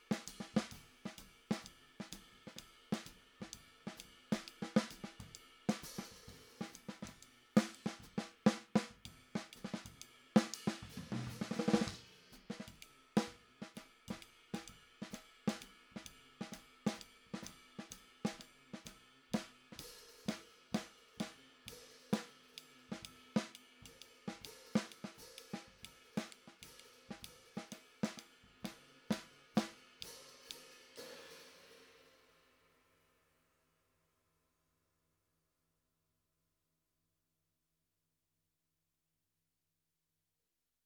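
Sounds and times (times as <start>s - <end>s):
snare drum: 0.0s - 31.8s.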